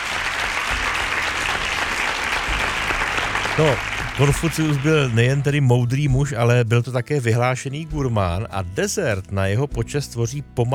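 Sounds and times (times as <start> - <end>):
hand clapping applause: 0.0 - 6.1
speech: 3.6 - 10.7.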